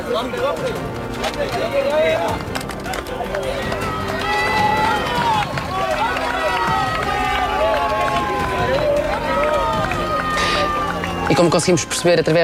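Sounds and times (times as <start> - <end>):
speech: 0.1 - 3.9, 11.3 - 12.4
people shouting with joy: 3.2 - 12.3.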